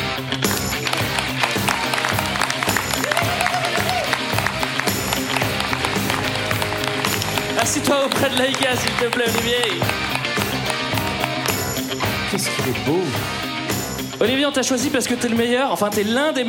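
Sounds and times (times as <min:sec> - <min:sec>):
audience applause: 0:00.4 - 0:12.0
speech: 0:07.8 - 0:10.1, 0:12.3 - 0:13.4, 0:14.2 - 0:16.4.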